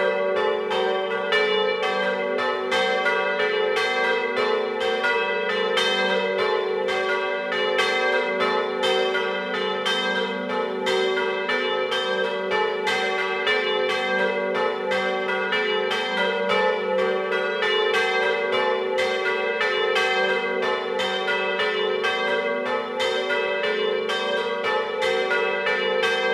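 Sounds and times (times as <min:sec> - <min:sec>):
bells ringing: 0:00.0 - 0:26.3.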